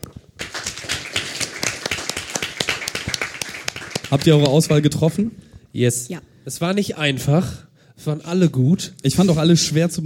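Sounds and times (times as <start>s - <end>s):
audience applause: 0.4s - 4.8s
speech: 4.1s - 10.0s.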